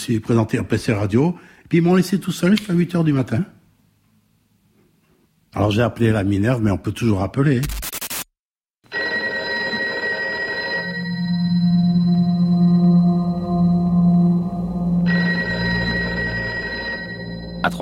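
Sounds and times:
speech: 0.0s - 3.6s, 5.5s - 7.8s
telephone bell ringing at the Ministry of the Armed Forces in Paris: 8.9s - 13.1s, 15.0s - 17.8s
low humming drone: 11.0s - 17.8s.

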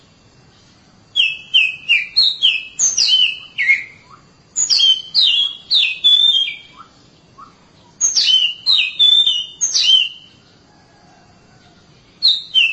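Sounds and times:
Oriental magpie-robin song: 1.1s - 10.5s, 12.0s - 12.7s.

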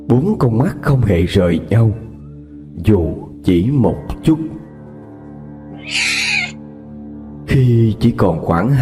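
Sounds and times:
speech: 0.1s - 2.1s, 2.8s - 4.6s, 5.8s - 6.1s, 7.5s - 8.8s
cat screeching at night: 5.7s - 6.6s.

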